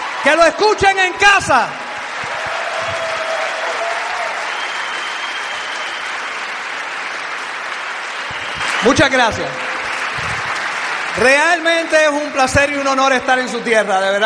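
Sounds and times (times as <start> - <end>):
audience applause: 0.0 - 13.2
speech: 0.2 - 1.8, 8.8 - 9.6, 11.2 - 14.2.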